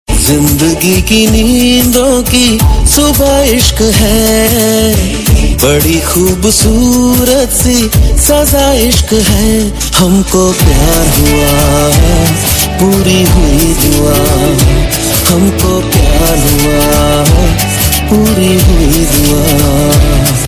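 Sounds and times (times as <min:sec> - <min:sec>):
man's voice: 0:00.1 - 0:20.4.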